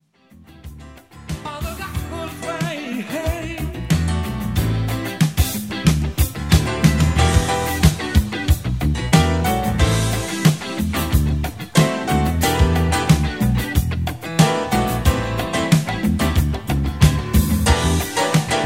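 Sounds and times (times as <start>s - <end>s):
piano solo: 4.0s - 18.6s.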